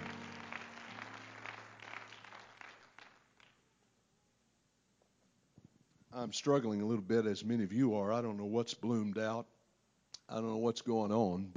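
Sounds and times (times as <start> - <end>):
audience clapping hands: 0.0 - 3.8
speech: 6.2 - 9.5, 10.3 - 11.5.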